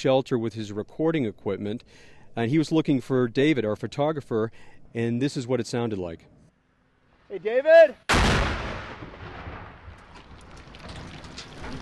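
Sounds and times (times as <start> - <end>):
speech: 0.0 - 6.4, 7.3 - 8.6
artillery explosion: 8.1 - 11.8
dirt raining down: 8.1 - 11.8.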